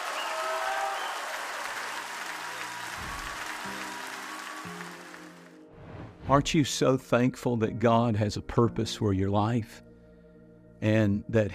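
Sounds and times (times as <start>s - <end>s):
audience clapping hands: 0.0s - 5.6s
speech: 6.3s - 9.9s, 10.8s - 11.5s.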